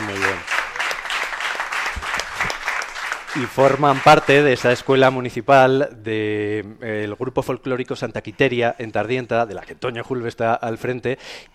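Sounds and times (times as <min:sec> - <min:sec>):
audience applause for young folk dancers from a municipal folklore school in Tardienta: 0:00.0 - 0:05.2
speech: 0:03.4 - 0:11.5.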